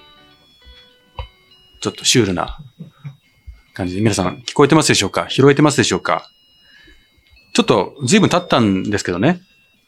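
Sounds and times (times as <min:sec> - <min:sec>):
musical birthday card playing tinny electronic melody: 0:00.0 - 0:09.8
speech: 0:01.8 - 0:02.7, 0:03.8 - 0:06.4, 0:07.6 - 0:09.5.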